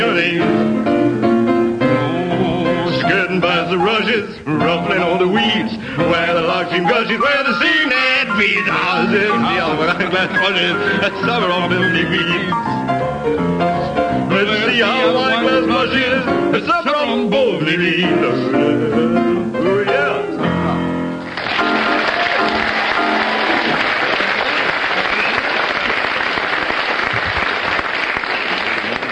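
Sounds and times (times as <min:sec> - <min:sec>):
music with singing: 0:00.0 - 0:12.9, 0:13.6 - 0:21.0
speech: 0:04.0 - 0:21.0
loud sustained crowd applause: 0:21.2 - 0:29.1.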